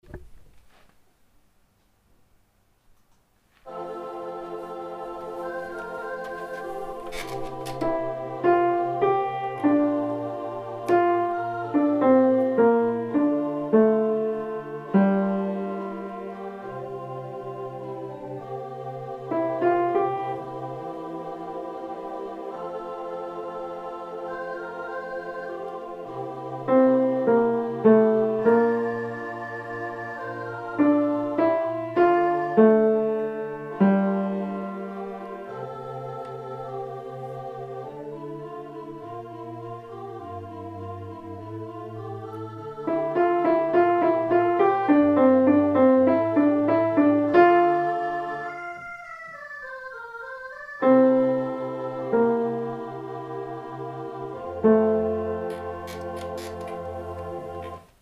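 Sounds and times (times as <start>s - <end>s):
soprano singing: 3.7s - 58.0s.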